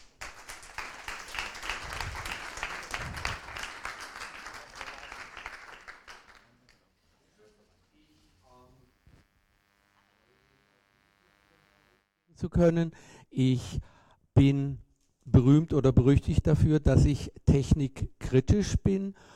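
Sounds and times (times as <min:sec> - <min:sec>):
audience applause: 0:00.0 - 0:06.7
speech: 0:12.4 - 0:19.3.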